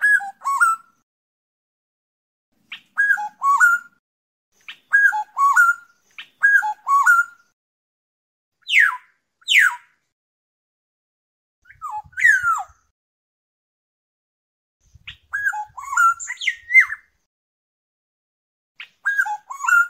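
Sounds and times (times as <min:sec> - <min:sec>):
oriole song: 0:00.0 - 0:01.0, 0:02.7 - 0:04.0, 0:04.6 - 0:07.6, 0:08.6 - 0:10.0, 0:11.6 - 0:12.9, 0:14.9 - 0:17.2, 0:18.8 - 0:19.8.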